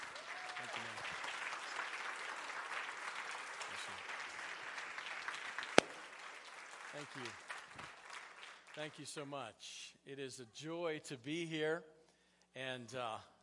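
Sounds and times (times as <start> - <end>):
faint applause from a church congregation at the Main Christian Center: 0.0 - 9.2
speech: 7.0 - 7.5, 8.8 - 13.3.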